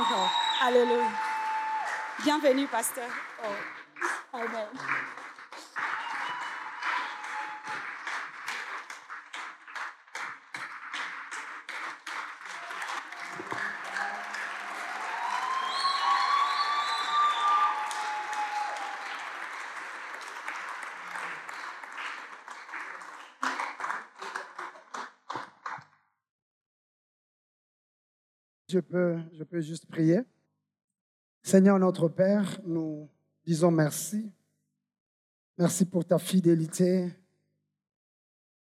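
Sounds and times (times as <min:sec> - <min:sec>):
audience applause welcoming a pastor: 0:00.0 - 0:25.8
speech: 0:00.6 - 0:01.3, 0:02.2 - 0:05.1, 0:28.7 - 0:30.4, 0:31.5 - 0:34.4, 0:35.6 - 0:37.2.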